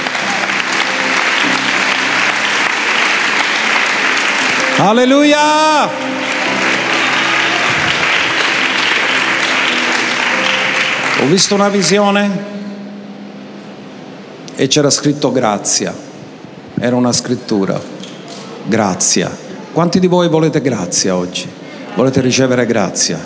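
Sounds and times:
large audience applause: 0:00.0 - 0:12.2
speech: 0:04.8 - 0:06.2, 0:11.2 - 0:12.7, 0:14.6 - 0:16.1, 0:16.8 - 0:17.9, 0:18.7 - 0:23.2.

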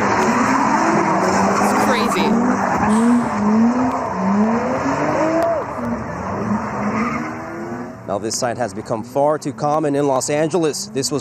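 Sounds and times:
car engines roaring: 0:00.0 - 0:11.1
car tires screeching during street takeover: 0:00.0 - 0:11.1
crowd noise: 0:01.2 - 0:03.4
speech: 0:08.2 - 0:11.1.

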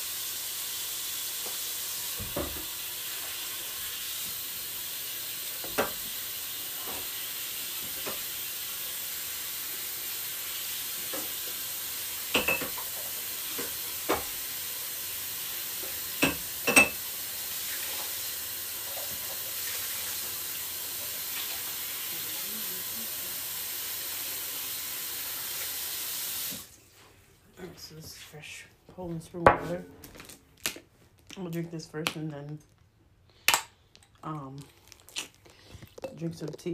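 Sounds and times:
faucet running while dishes are rinsed: 0:00.0 - 0:26.8
speech: 0:27.8 - 0:30.2, 0:31.4 - 0:32.8, 0:34.2 - 0:34.8, 0:36.2 - 0:36.7.

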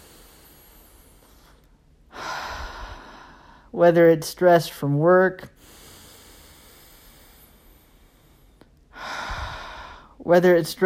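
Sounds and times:
deep breath out during a guided breathing exercise: 0:00.0 - 0:03.8, 0:05.6 - 0:10.2
speech: 0:03.7 - 0:05.6, 0:10.3 - 0:10.8.

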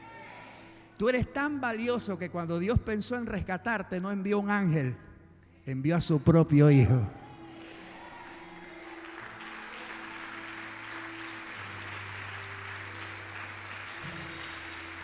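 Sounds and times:
speech: 0:01.0 - 0:07.2
audience applause: 0:07.6 - 0:15.0.

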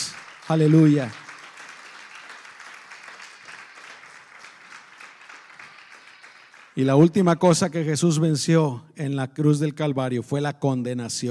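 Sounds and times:
audience applause: 0:00.0 - 0:07.5
speech: 0:00.5 - 0:01.2, 0:06.8 - 0:11.2.

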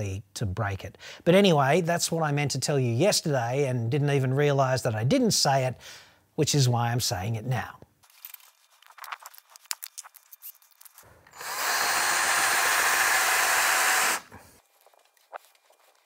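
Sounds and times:
speech: 0:00.0 - 0:07.8
power drill boring an 8.5 mm tapping-size hole in steel: 0:11.3 - 0:14.4.

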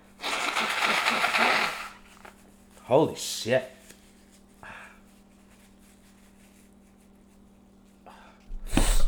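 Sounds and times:
person blowing nose: 0:00.1 - 0:02.4, 0:08.6 - 0:09.0
speech: 0:02.9 - 0:03.8.

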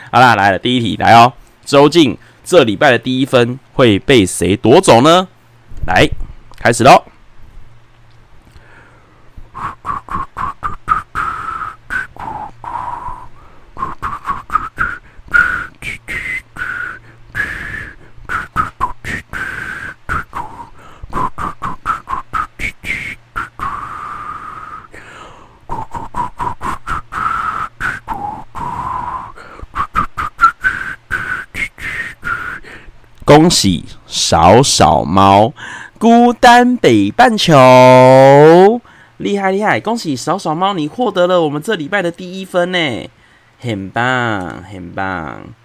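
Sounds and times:
speech: 0:00.1 - 0:07.1, 0:33.3 - 0:45.6
amateur breathy whistling of a pop melody: 0:09.5 - 0:32.8.

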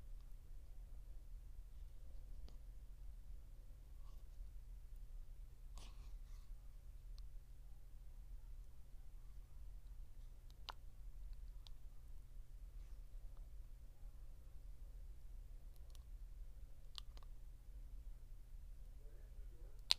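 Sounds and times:
steady low hum: 0:00.0 - 0:19.9
mouth clicks and wet smacks: 0:16.8 - 0:17.3, 0:19.8 - 0:19.9.

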